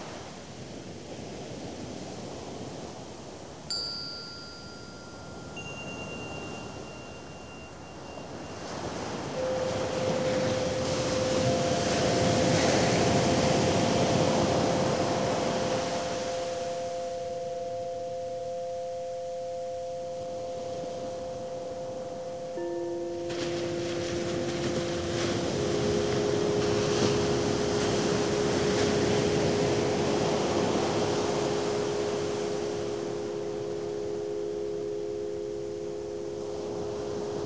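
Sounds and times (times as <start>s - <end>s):
music for yoga, meditation and relaxation: 2.1s - 37.4s.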